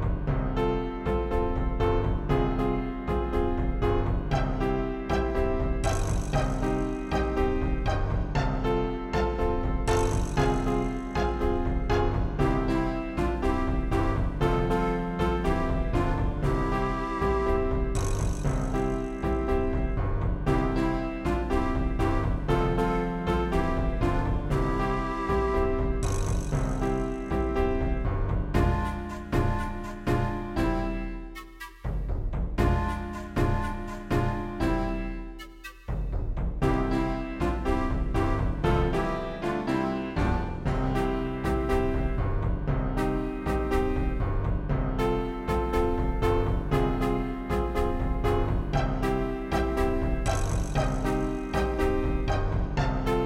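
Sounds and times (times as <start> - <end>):
jungle beat: 0.1 - 53.2.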